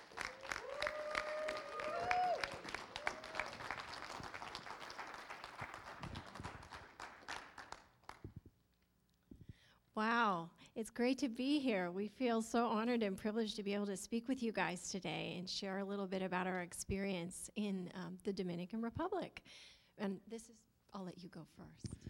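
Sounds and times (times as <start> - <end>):
audience applause welcoming guests at a City Life gathering: 0.0 - 8.2
speech: 10.0 - 22.0.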